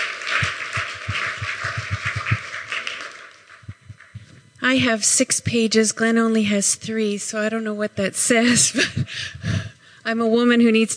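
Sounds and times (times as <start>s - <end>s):
audience applause: 0.0s - 4.2s
speech: 4.6s - 10.9s.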